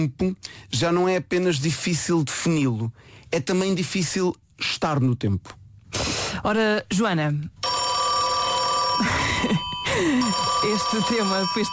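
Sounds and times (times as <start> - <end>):
speech: 0.0 - 7.6, 9.0 - 11.7
1930 rotary dial telephone bell ringing: 7.6 - 11.7.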